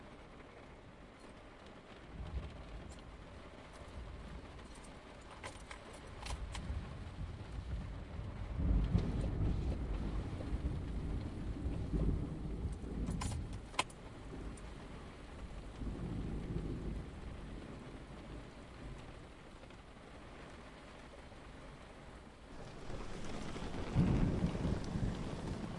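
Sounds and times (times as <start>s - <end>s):
thunder: 6.4s - 19.3s, 22.5s - 25.7s.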